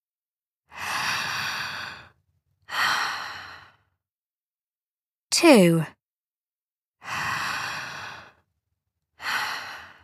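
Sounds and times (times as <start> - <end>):
deep breaths during a guided relaxation exercise: 0.7 - 4.0, 7.0 - 8.5, 9.2 - 10.0
speech: 5.4 - 6.0.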